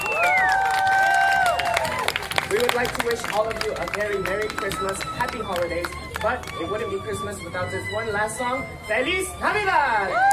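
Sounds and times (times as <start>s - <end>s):
high whistle or whooping cry: 0.0s - 2.0s
crowd applauding and cheering: 0.0s - 6.8s, 10.1s - 10.3s
speech: 2.6s - 10.3s.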